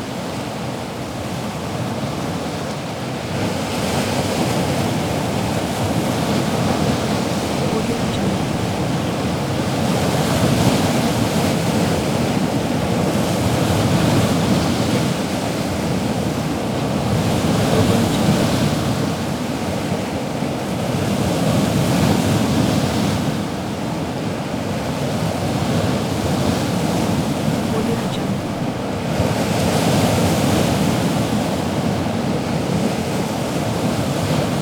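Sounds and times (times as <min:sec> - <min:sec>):
stormy sea waves: 0:00.0 - 0:34.6.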